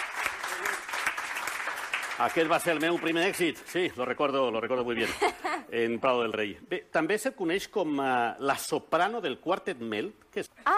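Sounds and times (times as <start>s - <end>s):
audience applause: 0.0s - 3.5s
speech: 2.2s - 10.5s.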